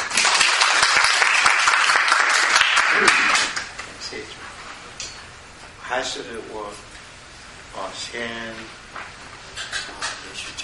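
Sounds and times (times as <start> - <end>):
audience applause welcoming a speaker: 0.0 - 3.7
speech: 6.0 - 6.9, 7.8 - 9.2.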